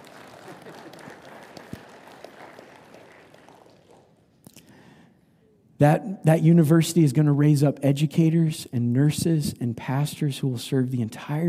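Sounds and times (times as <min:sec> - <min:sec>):
audience clapping: 0:00.0 - 0:04.4
speech: 0:05.8 - 0:11.4.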